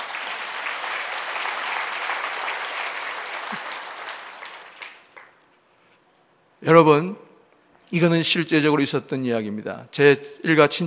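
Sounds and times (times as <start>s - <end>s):
applause: 0.0s - 5.4s
speech: 6.6s - 7.3s, 7.9s - 10.8s.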